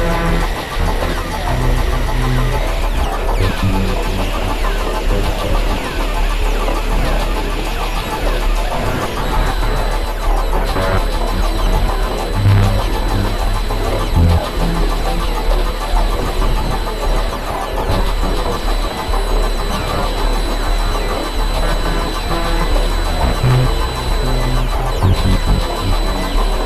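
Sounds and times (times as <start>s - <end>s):
synth noise: 0.0s - 26.6s.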